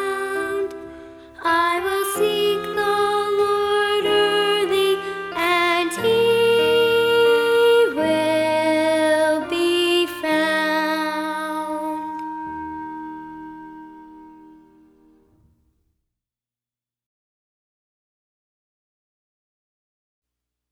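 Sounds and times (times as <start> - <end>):
music: 0.0 - 15.9.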